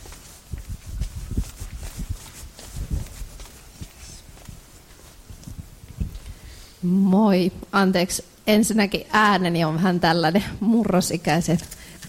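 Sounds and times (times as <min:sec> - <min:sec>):
person's quick running footsteps at a public discussion event: 0:00.0 - 0:06.3
speech: 0:06.8 - 0:12.0.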